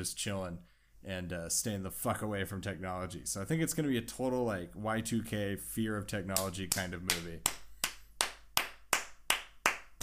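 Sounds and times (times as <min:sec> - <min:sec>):
speech: 0:00.0 - 0:07.6
slow steady hand clapping: 0:06.3 - 0:10.0.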